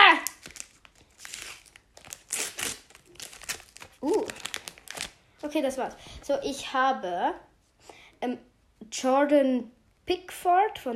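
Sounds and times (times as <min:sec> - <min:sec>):
foil sticker card packet crinkling as it is torn open: 0:00.0 - 0:05.6
speech: 0:05.5 - 0:07.5, 0:08.2 - 0:10.9.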